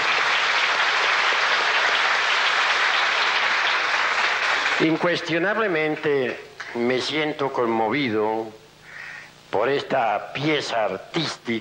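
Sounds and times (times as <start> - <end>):
audience applause: 0.0 - 5.2
speech: 4.8 - 8.6, 9.5 - 11.5.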